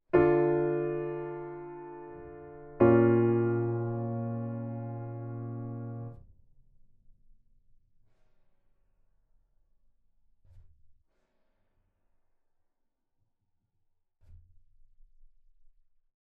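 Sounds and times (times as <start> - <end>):
triad chord: 0.1 - 6.1.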